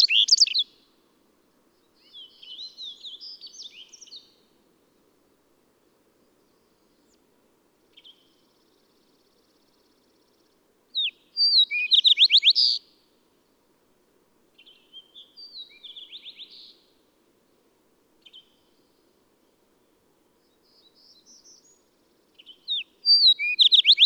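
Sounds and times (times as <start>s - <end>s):
bird song: 0.0s - 0.9s, 1.8s - 5.0s, 7.9s - 13.0s, 14.6s - 17.0s, 18.2s - 19.2s, 20.4s - 24.0s.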